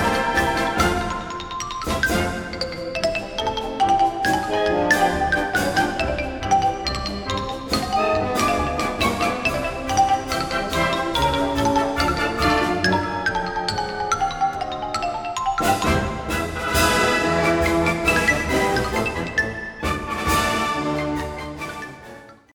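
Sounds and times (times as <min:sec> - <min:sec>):
playful xylophone runs: 0:00.0 - 0:22.4.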